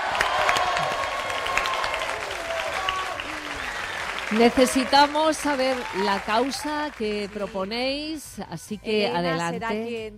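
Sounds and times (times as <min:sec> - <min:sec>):
audience applause: 0:00.0 - 0:07.8
speech: 0:04.3 - 0:10.1.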